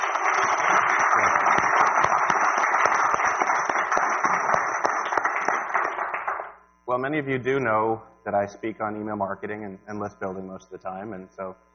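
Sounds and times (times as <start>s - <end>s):
audience applause: 0.0s - 6.6s
speech: 7.1s - 11.7s.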